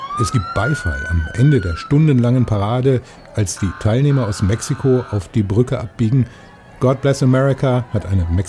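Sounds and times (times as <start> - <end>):
speech: 0.2 - 8.4
Border Patrol vehicles honking loudly: 3.4 - 5.4.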